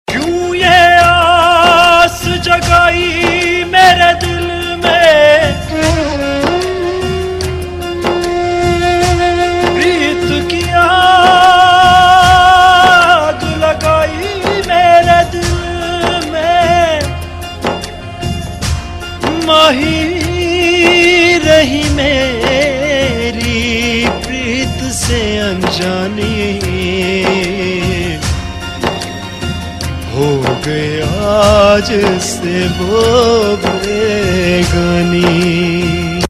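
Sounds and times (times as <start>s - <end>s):
sad song: 0.1s - 36.2s.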